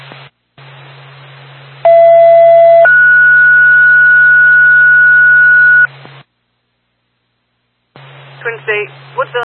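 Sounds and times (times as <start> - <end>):
radio static hiss: 0.0 - 1.8, 4.8 - 6.3, 7.9 - 9.5
two-tone dispatch radio paging tone: 1.9 - 5.9
speech: 8.7 - 9.4.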